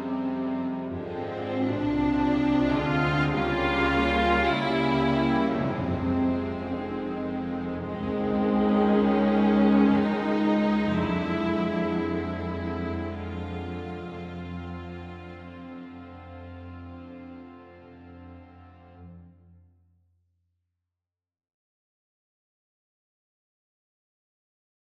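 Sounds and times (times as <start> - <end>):
old string sound: 0.0 - 19.5.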